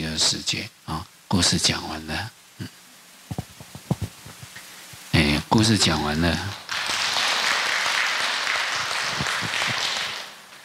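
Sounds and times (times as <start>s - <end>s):
speech: 0.2s - 2.8s, 5.6s - 6.6s
audience applause: 6.3s - 10.6s.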